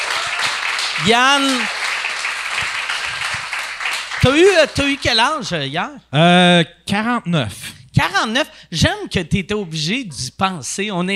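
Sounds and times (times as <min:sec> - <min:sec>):
audience applause: 0:00.0 - 0:05.2
speech: 0:01.0 - 0:01.8, 0:04.2 - 0:11.1.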